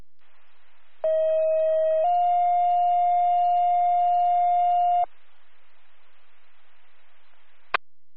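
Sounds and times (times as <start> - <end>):
East Branch Fire department dispatch alert tone: 1.0 - 5.1.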